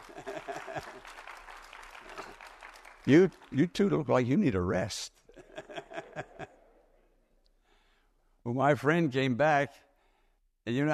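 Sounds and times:
laughter: 0:00.0 - 0:01.2, 0:05.3 - 0:07.0
audience applause welcoming a couple home from vacation: 0:00.0 - 0:04.6
speech: 0:03.1 - 0:05.1, 0:08.5 - 0:09.8, 0:10.7 - 0:10.9.

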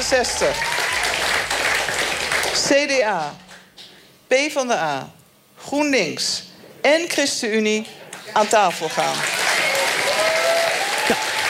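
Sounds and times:
applause from fans: 0:00.0 - 0:03.6, 0:07.8 - 0:11.4
speech: 0:00.1 - 0:00.9, 0:02.6 - 0:03.4, 0:04.3 - 0:09.4.

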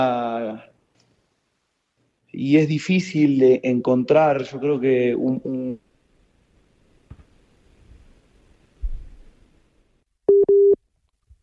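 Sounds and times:
speech: 0:00.0 - 0:00.7, 0:02.4 - 0:05.8
busy tone from a dropped WhatsApp audio call from Ecuador: 0:10.3 - 0:10.8.

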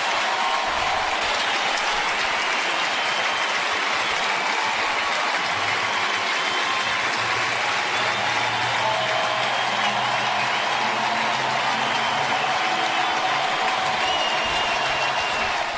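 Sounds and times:
Busch Stadium crowd standing ovation: 0:00.0 - 0:15.7.

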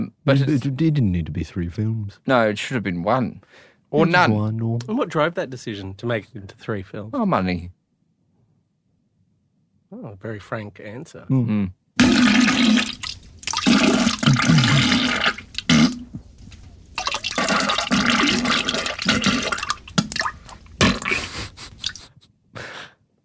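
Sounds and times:
speech: 0:00.2 - 0:07.8, 0:09.9 - 0:13.0
toilet flushing: 0:12.0 - 0:16.1, 0:16.9 - 0:21.1.

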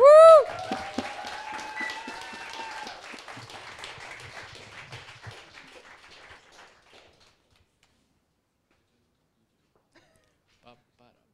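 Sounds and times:
audience applause welcoming a singer at a live evening concert: 0:00.0 - 0:07.5.

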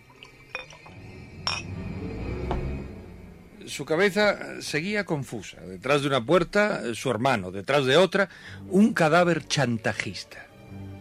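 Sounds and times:
brandy trickling into a glass: 0:00.0 - 0:01.5
glass clinks while pouring brandy: 0:00.5 - 0:00.9, 0:01.5 - 0:01.7
speech: 0:03.7 - 0:10.5.

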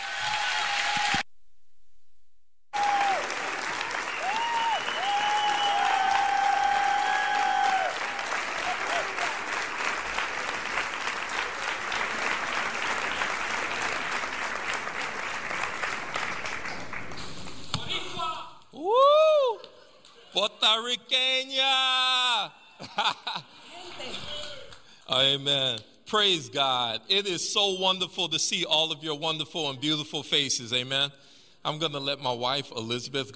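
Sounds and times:
cheering: 0:00.0 - 0:01.2, 0:02.8 - 0:16.8, 0:18.2 - 0:19.7
church congregation applauding: 0:00.0 - 0:01.2, 0:02.8 - 0:17.7
speech: 0:20.4 - 0:22.2, 0:25.2 - 0:33.3
laughter: 0:22.7 - 0:24.4.

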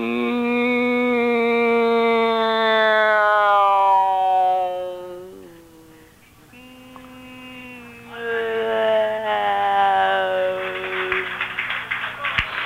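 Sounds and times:
voice imitating an airplane: 0:00.0 - 0:11.3
scattered claps: 0:08.0 - 0:12.6.

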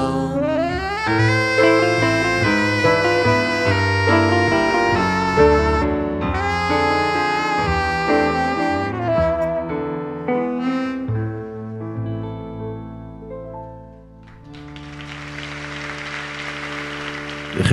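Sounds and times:
song with sustained instrumental notes: 0:00.2 - 0:17.7
audience applause: 0:14.3 - 0:17.7.

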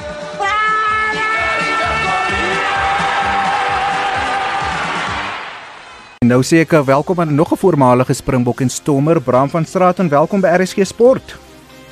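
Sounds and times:
crowd shouting and cheering: 0:00.0 - 0:06.2
speech: 0:06.3 - 0:11.5.

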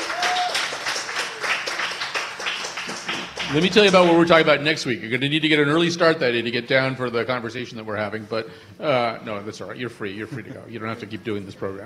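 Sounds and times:
audience applause: 0:00.0 - 0:04.5
speech: 0:03.5 - 0:11.8.

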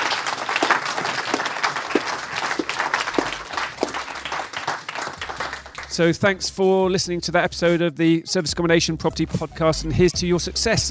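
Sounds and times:
round of applause: 0:00.0 - 0:06.1
speech: 0:06.0 - 0:10.8.

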